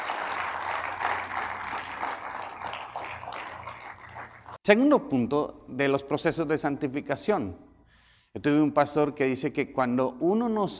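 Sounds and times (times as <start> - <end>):
audience applause: 0.0 - 4.6
speech: 4.7 - 7.7, 8.4 - 10.7.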